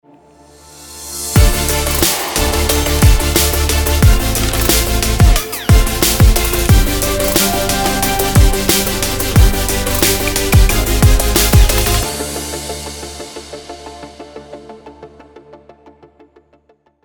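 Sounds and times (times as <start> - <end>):
future bass sport music: 1.1 - 15.6.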